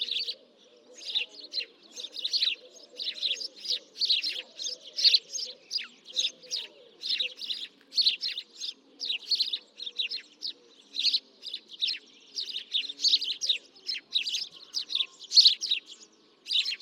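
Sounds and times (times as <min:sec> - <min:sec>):
house sparrows Passer domesticus chirping: 0:00.0 - 0:16.7.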